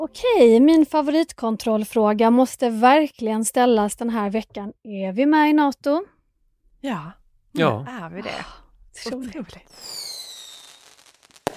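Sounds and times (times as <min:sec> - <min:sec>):
speech: 0:00.0 - 0:06.2, 0:06.8 - 0:10.1
fireworks hissing: 0:09.6 - 0:11.5.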